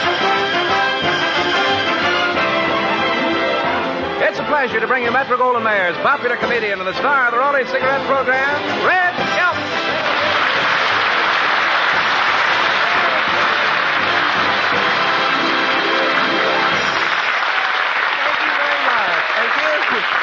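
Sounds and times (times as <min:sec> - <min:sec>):
cast and audience applauding: 0:00.0 - 0:03.6, 0:08.8 - 0:20.2
speech: 0:04.6 - 0:09.4.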